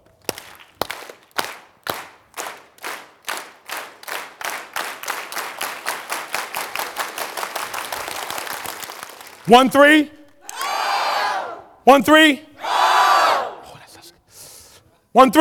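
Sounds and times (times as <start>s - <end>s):
crowd clapping in unison: 0.0s - 11.5s
speech: 9.5s - 10.2s, 11.9s - 12.5s, 15.2s - 15.3s.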